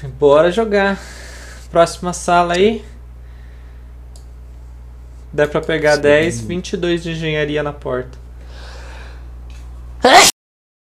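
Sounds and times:
speech: 0:00.0 - 0:02.9, 0:05.4 - 0:08.2, 0:10.0 - 0:10.3
quiet steady low hum: 0:00.0 - 0:10.0
sneeze: 0:10.0 - 0:10.3.

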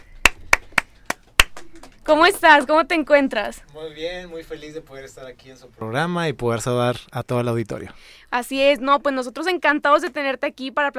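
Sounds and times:
hand claps: 0:00.0 - 0:02.0
speech: 0:02.1 - 0:10.9.

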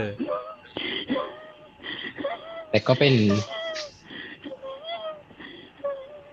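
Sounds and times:
speech: 0:00.0 - 0:00.4, 0:02.7 - 0:03.9
asthmatic wheezing breaths: 0:00.8 - 0:02.3, 0:03.8 - 0:04.6, 0:05.3 - 0:05.9.

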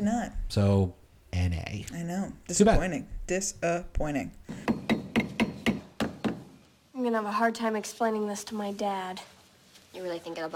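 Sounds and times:
speech: 0:00.0 - 0:04.7, 0:07.0 - 0:09.4, 0:10.0 - 0:10.5
nailing crucifixes to a bedroom wall: 0:04.5 - 0:06.6.

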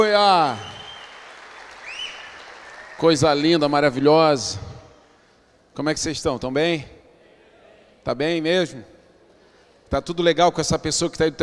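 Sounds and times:
speech: 0:00.0 - 0:00.7, 0:03.0 - 0:04.7, 0:05.8 - 0:07.0, 0:08.0 - 0:08.9, 0:09.9 - 0:11.4
crowd applause: 0:00.2 - 0:04.1
high whistle: 0:00.5 - 0:03.1.

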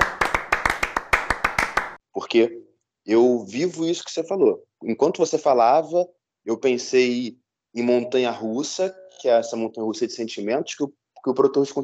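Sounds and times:
hands clapping in applause: 0:00.0 - 0:02.0
speech: 0:02.2 - 0:11.8.

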